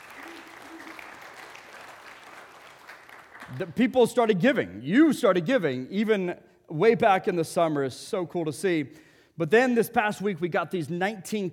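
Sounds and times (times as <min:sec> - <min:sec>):
audience applause: 0:00.0 - 0:03.8
speech: 0:03.5 - 0:11.5.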